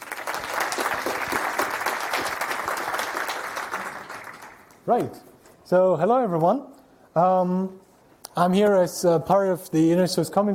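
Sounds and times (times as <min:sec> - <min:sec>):
audience applause welcoming a speaker to a talk: 0:00.0 - 0:04.8
speech: 0:04.8 - 0:07.8, 0:08.4 - 0:10.5.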